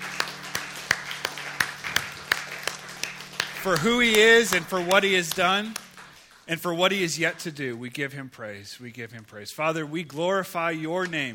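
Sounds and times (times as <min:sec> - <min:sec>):
church congregation clapping hands in praise during a morning service: 0:00.0 - 0:07.4
speech: 0:03.6 - 0:05.8, 0:06.5 - 0:11.3.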